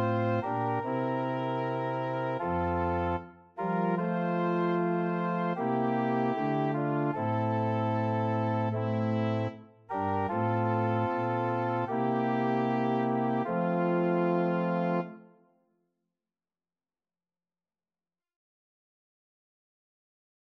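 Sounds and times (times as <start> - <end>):
organ: 0.0 - 15.2.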